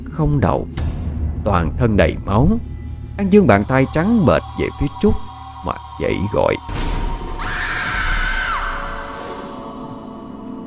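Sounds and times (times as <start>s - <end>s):
speech: 0.2s - 0.8s, 1.4s - 6.8s
terrified woman screaming: 7.2s - 9.0s.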